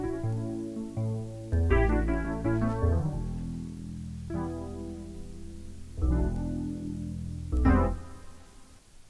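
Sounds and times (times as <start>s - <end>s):
electric piano disco music: 0.0s - 9.0s.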